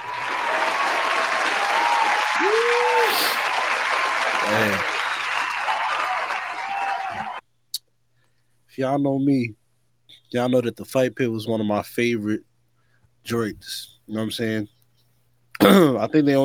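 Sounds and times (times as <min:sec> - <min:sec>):
applause: 0:00.0 - 0:07.4
speech: 0:08.8 - 0:09.6, 0:10.3 - 0:12.5, 0:13.2 - 0:14.8, 0:15.6 - 0:16.4.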